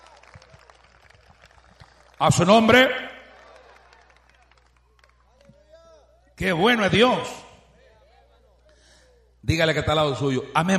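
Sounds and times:
church congregation clapping: 0:00.0 - 0:05.8
speech: 0:02.2 - 0:03.1, 0:06.4 - 0:07.5, 0:09.5 - 0:10.7.

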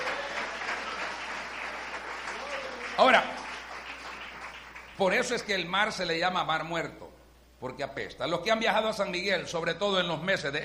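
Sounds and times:
audience applause: 0:00.0 - 0:05.1
speech: 0:03.0 - 0:03.3, 0:05.0 - 0:10.6.

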